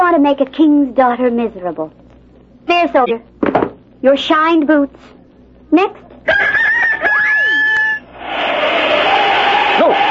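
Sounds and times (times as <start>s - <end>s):
speech: 0.1s - 2.0s, 2.7s - 6.6s
rooster crowing: 6.2s - 10.0s.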